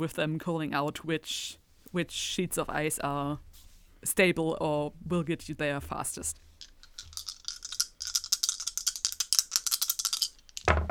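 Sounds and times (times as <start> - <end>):
speech: 0.0 - 6.5
dice being shaken and rattling: 6.4 - 10.7.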